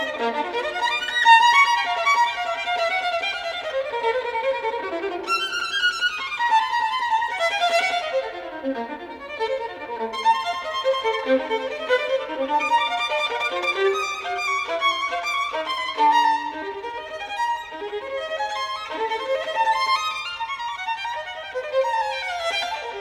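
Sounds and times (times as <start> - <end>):
classical caprice in G minor: 0.0 - 22.9.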